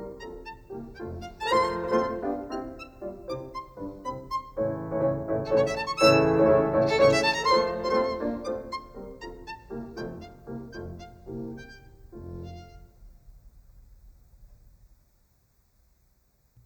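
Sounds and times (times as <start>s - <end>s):
violin sonata in F major: 0.0s - 13.2s.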